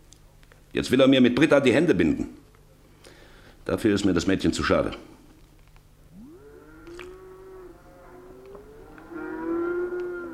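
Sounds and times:
speech: 0.7s - 2.4s, 3.7s - 5.2s
cattle mooing: 6.1s - 10.3s.

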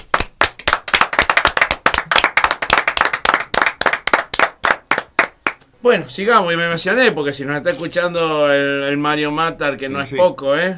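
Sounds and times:
applause: 0.0s - 5.6s
speech: 5.8s - 10.7s.

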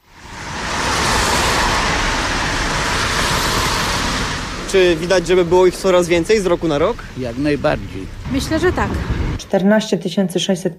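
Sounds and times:
dense road traffic with cars passing: 0.0s - 9.4s
speech: 4.7s - 10.7s.

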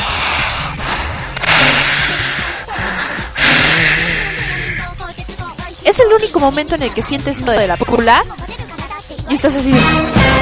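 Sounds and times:
voice imitating heavy mechanical Darth Vader breathing: 0.0s - 5.2s
speech: 6.0s - 8.5s, 9.3s - 10.3s.

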